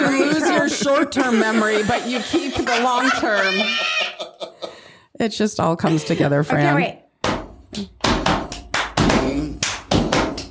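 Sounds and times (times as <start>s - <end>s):
laughter: 0.0s - 4.9s
speech: 0.8s - 4.0s, 5.2s - 7.0s, 7.7s - 8.0s
cheerleader clapping rhythm: 7.2s - 10.5s.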